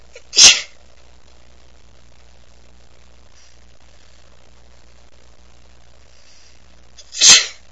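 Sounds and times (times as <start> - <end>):
woman sneezing softly: 0.2 - 0.8, 7.0 - 7.6.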